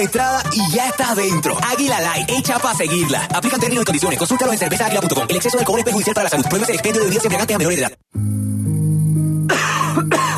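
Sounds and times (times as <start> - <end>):
speech: 0.0 - 8.4
person coughing in an advertisement for an expectorant syrup: 9.5 - 10.3.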